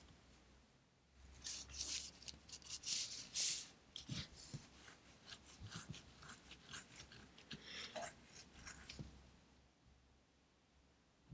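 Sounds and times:
scratchy pencil strokes and rubbing: 0:01.4 - 0:09.1.

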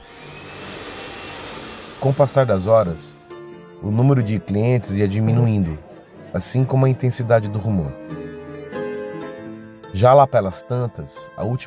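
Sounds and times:
hair dryers blowing hot air: 0:00.0 - 0:03.2
speech: 0:02.0 - 0:03.2, 0:03.8 - 0:08.2, 0:10.0 - 0:11.6.

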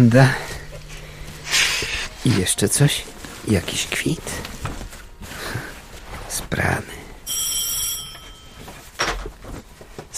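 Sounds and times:
speech: 0:00.0 - 0:00.5, 0:02.2 - 0:04.5, 0:06.5 - 0:07.0
telephone ringing with electronic tone: 0:07.2 - 0:09.0.

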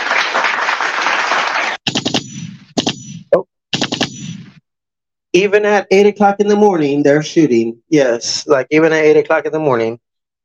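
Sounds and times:
studio audience applause: 0:00.0 - 0:01.9
speech: 0:05.4 - 0:10.0.

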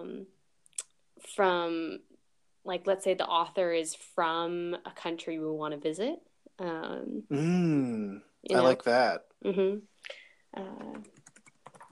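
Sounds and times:
speech: 0:01.2 - 0:11.2
typing on a computer keyboard: 0:10.7 - 0:11.9.

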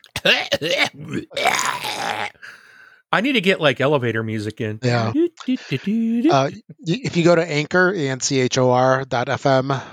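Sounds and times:
raspy strained cough: 0:00.1 - 0:01.4
speech: 0:00.2 - 0:09.9.

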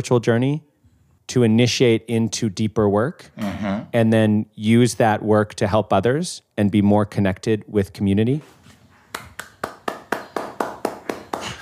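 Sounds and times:
speech: 0:00.0 - 0:00.7, 0:01.3 - 0:08.6
clapping: 0:09.1 - 0:11.6.

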